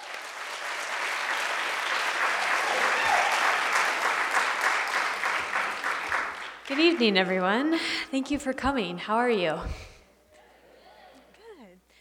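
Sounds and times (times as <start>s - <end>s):
heartfelt audience applause: 0.0s - 7.7s
speech: 6.7s - 9.9s.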